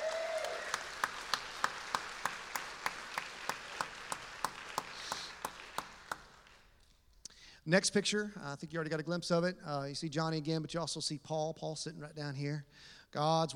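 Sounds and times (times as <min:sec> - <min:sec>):
audience applause: 0:00.0 - 0:06.8
speech: 0:07.7 - 0:13.5.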